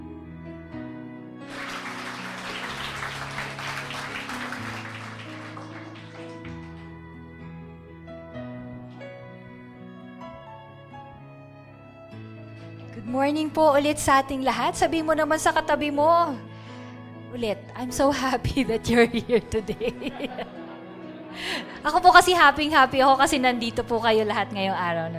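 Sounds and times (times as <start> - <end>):
audience clapping loudly: 1.5 - 7.0
laughter: 1.6 - 6.7, 19.1 - 21.9
speech: 13.0 - 16.5, 17.4 - 20.6, 21.8 - 25.1.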